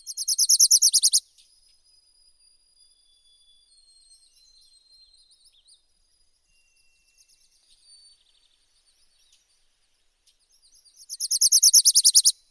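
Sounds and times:
Wilson's warbler Wilsonia pusilla singing: 0.1s - 1.2s, 11.1s - 12.3s.

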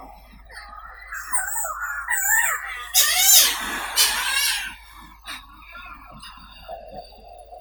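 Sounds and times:
sooty shearwater Puffinus griseus calling: 1.0s - 5.5s.

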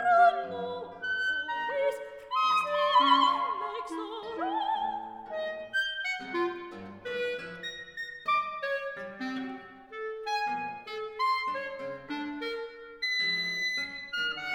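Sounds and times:
person singing: 0.0s - 5.2s
E-flat clarinet: 0.0s - 14.5s
guitar: 0.0s - 14.5s.

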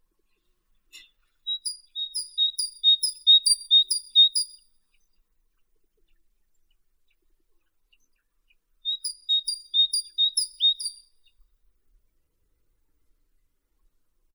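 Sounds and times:
great tit Parus major: 1.6s - 4.5s, 9.0s - 11.0s.

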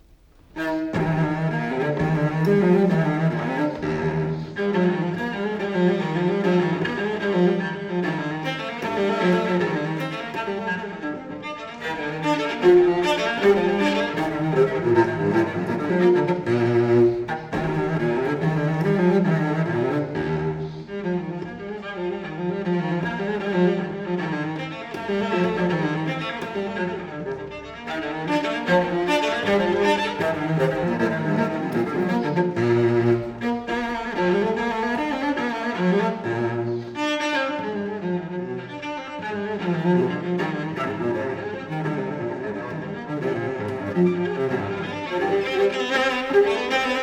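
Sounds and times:
solo cello gigue in E flat major: 0.0s - 47.0s.

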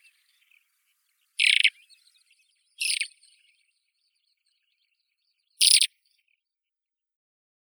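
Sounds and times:
lesser short-toed lark Calandrella rufescens: 1.4s - 1.7s, 5.6s - 5.9s.

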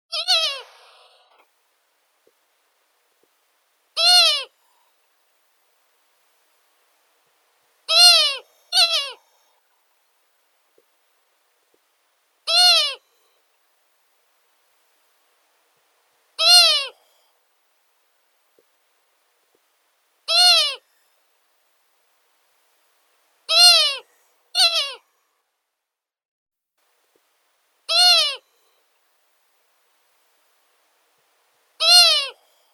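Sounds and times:
long-eared owl Asio otus calling: 0.1s - 1.4s, 4.0s - 4.5s, 7.9s - 9.5s, 12.4s - 13.3s, 16.4s - 17.0s, 20.2s - 20.8s, 23.5s - 25.0s, 27.9s - 28.7s, 31.8s - 32.4s.

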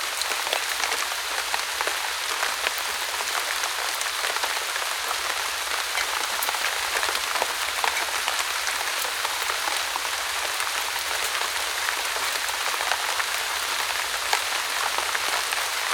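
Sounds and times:
rain in a deciduous forest: 0.0s - 15.9s.

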